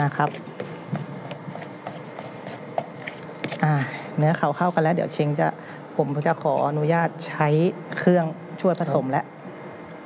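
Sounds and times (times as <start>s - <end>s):
speech: 0.0s - 0.6s, 3.6s - 9.3s
batter with sweetener being stirred by hand: 0.0s - 3.6s.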